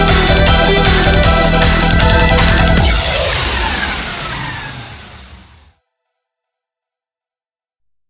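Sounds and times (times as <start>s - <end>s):
1960s instrumental music: 0.0s - 3.9s.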